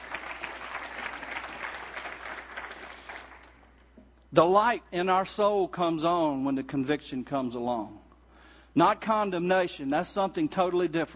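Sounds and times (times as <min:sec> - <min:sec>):
audience applause: 0:00.0 - 0:03.5
speech: 0:04.3 - 0:08.0, 0:08.8 - 0:11.1.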